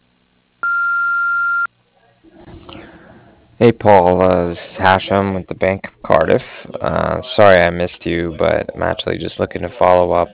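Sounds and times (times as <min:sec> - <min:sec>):
answering machine beep: 0:00.6 - 0:01.7
speech: 0:03.6 - 0:10.3.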